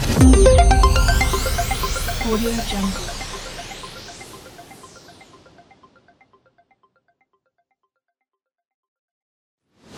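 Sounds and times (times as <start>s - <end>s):
brand logo sound: 0.2s - 6.2s.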